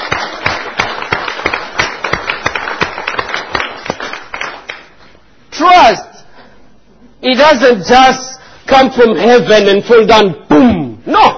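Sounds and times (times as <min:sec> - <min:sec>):
audience applause: 0:00.0 - 0:05.0
speech: 0:07.2 - 0:10.4.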